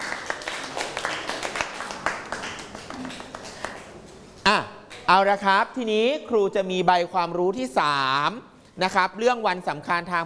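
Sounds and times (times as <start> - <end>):
hands clapping: 0.0 - 4.2
speech: 4.5 - 10.2.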